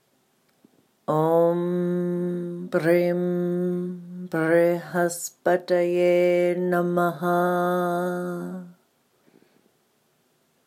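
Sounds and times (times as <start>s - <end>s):
mantra chanted: 1.1s - 8.8s.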